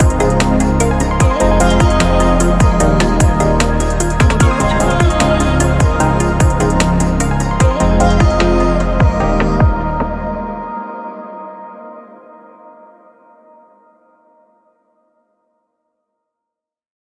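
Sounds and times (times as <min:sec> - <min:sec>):
chill pop music: 0:00.0 - 0:13.1.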